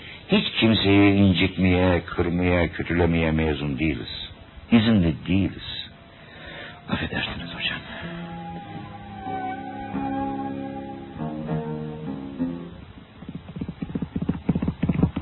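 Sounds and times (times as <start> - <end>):
speech: 0.6 - 5.8, 6.9 - 7.9
sustained tonal background: 7.1 - 12.9
horse hooves clip-clopping: 13.2 - 15.2.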